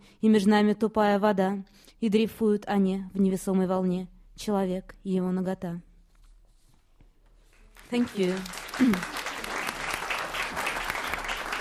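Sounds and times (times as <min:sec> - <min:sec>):
speech: 0:00.2 - 0:05.9, 0:07.9 - 0:09.2
crowd applauding: 0:07.6 - 0:11.5.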